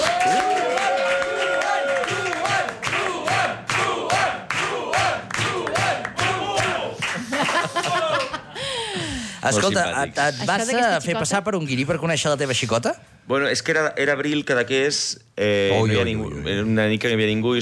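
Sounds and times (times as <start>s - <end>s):
audience applause: 0.0s - 8.5s
laughter: 7.0s - 9.2s
speech: 9.4s - 17.6s.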